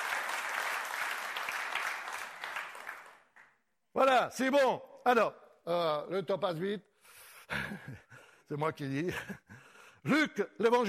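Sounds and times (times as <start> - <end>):
church congregation applauding: 0.0 - 3.6
speech: 4.0 - 6.9, 7.5 - 9.4, 10.0 - 10.8.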